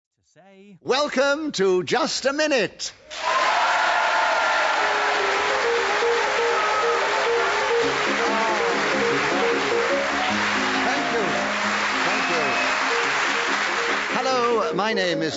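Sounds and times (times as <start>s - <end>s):
speech: 0.4s - 3.3s, 14.8s - 15.3s
piano waltz theme music: 4.4s - 15.3s.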